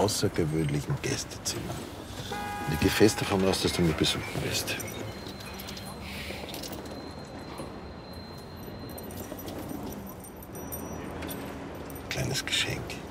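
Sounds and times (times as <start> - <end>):
speech: 0.0 - 5.0
keys jingling as they are passed from hand to hand: 2.9 - 13.0.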